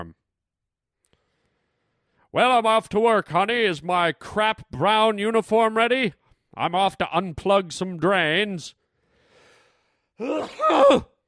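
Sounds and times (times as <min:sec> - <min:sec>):
speech: 0:02.3 - 0:08.8, 0:10.2 - 0:11.1
big sneeze: 0:10.2 - 0:11.2.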